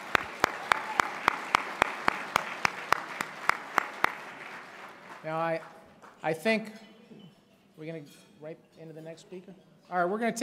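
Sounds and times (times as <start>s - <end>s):
audience applause: 0.0s - 6.2s
speech: 5.2s - 6.9s, 7.8s - 10.4s.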